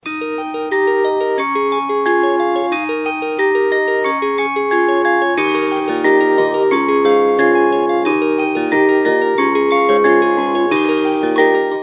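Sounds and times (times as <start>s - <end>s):
ringtone: 0.0s - 11.8s.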